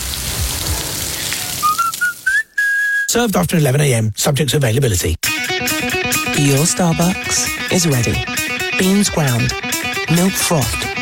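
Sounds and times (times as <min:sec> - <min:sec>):
beef burger patties sizzling on grill: 0:00.0 - 0:02.4
speech: 0:03.1 - 0:11.0.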